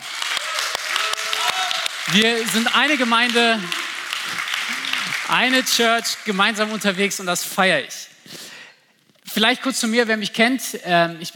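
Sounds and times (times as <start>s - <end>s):
audience applauding: 0.0s - 7.2s
speech: 2.1s - 3.8s, 5.3s - 8.0s, 9.4s - 11.3s.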